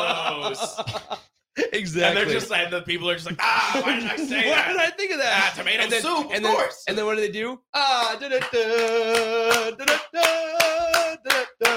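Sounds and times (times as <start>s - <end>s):
laughter: 0.0s - 2.5s, 3.3s - 5.8s
speech: 0.0s - 11.7s
clapping from a television infomercial: 8.0s - 11.7s.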